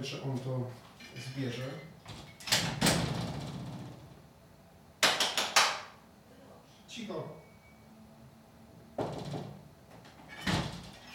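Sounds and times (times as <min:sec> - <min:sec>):
speech: 0:00.0 - 0:03.1, 0:07.0 - 0:07.5
door rattling shut: 0:02.0 - 0:04.1, 0:09.0 - 0:09.6, 0:10.3 - 0:11.1
hand claps from outside the closed room: 0:05.0 - 0:06.0.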